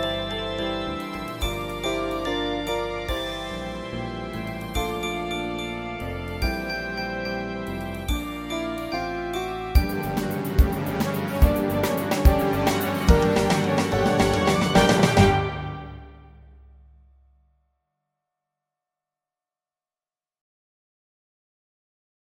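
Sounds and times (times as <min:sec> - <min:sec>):
backing track music: 0:00.0 - 0:16.8.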